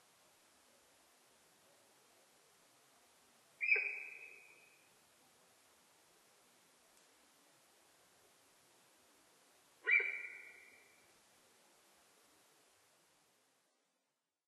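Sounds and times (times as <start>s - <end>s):
light background noise: 0.0s - 14.4s
sika deer whistles: 9.9s - 10.7s.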